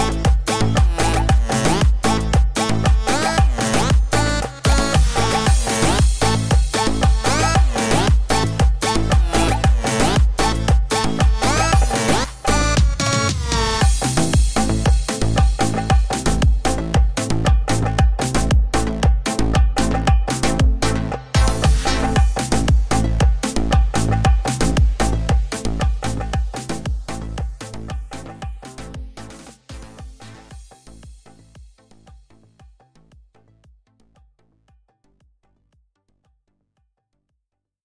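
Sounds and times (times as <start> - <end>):
tribal remix music: 0.0 - 36.2.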